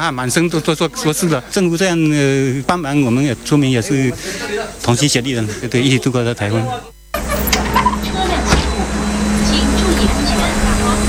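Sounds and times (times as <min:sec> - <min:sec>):
speech: 0:00.0 - 0:07.6
large bus engine rumbling: 0:07.2 - 0:11.0.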